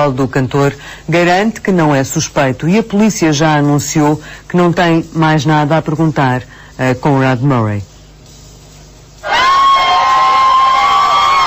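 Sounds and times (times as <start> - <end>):
speech: 0.0 - 7.9
crowd cheering and applauding as a family arrives: 9.2 - 11.4.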